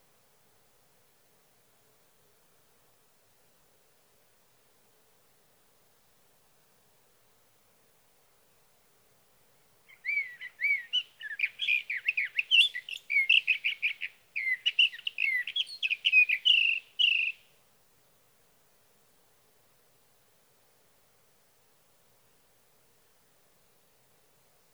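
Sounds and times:
Sage Thrasher singing through the night: 9.9s - 17.4s.

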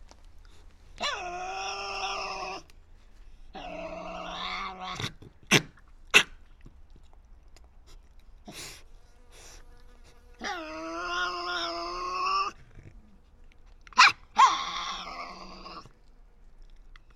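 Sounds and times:
Tasmanian devil wailing cry: 1.0s - 2.7s, 3.5s - 5.1s, 10.4s - 12.6s, 14.0s - 15.9s.

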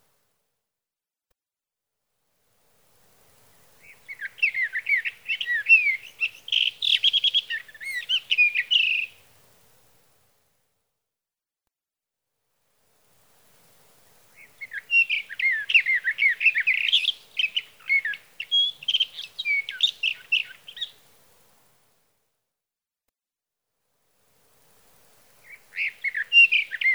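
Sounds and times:
sage thrasher singing a rapid stream of warbling notes: 3.9s - 9.2s, 14.6s - 20.9s, 25.5s - 26.9s.

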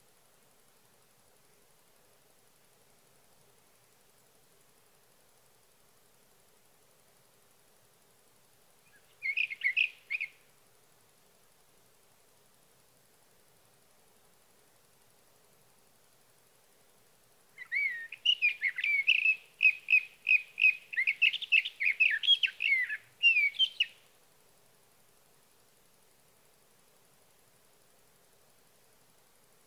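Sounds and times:
Sage thrasher song: 8.9s - 10.3s, 17.6s - 24.0s.

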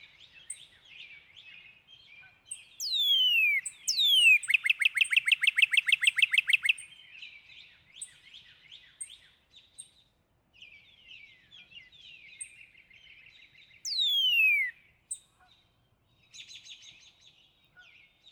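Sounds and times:
other birds twittering: 2.5s - 6.8s, 13.4s - 16.9s
northern cardinal song: 2.8s - 7.0s, 13.8s - 14.8s.

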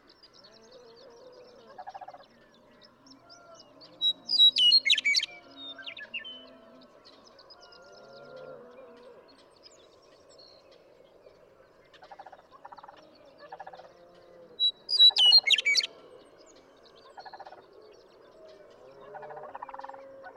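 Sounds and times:
western meadowlark singing: 3.5s - 6.5s, 14.6s - 15.9s.

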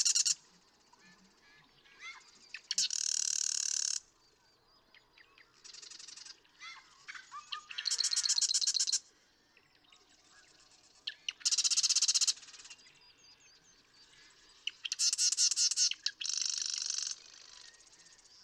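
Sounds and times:
marsh wren song of gurgles and buzzy rattle: 0.0s - 0.4s, 2.5s - 4.0s, 7.7s - 9.0s, 11.3s - 12.7s, 14.7s - 17.5s
soft chatter from other birds: 0.0s - 4.0s, 5.7s - 9.0s, 14.2s - 17.7s.

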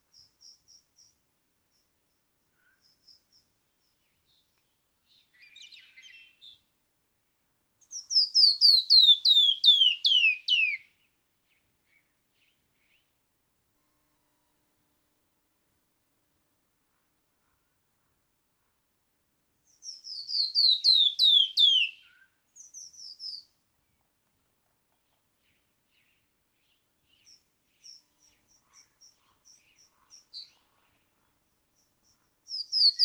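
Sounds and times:
canyon wren singing: 0.0s - 4.5s, 7.8s - 10.9s, 19.7s - 23.6s, 25.5s - 33.0s.

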